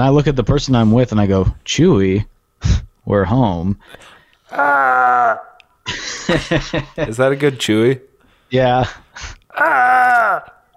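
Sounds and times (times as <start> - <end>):
speech: 0.0 - 10.6
Wilhelm scream: 4.5 - 5.6, 9.5 - 10.6
laughter: 5.9 - 7.2.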